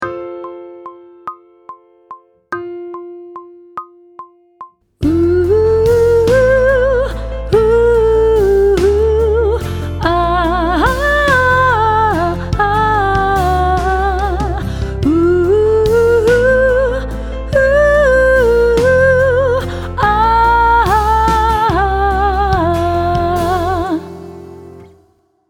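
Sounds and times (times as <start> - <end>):
person sight singing pop vocals: 5.0 - 24.2.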